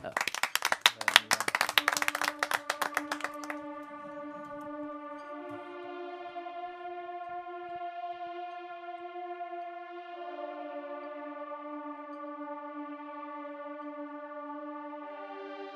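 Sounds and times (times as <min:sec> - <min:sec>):
people clapping around a table: 0:00.0 - 0:04.7
sustained musical note: 0:00.0 - 0:15.5.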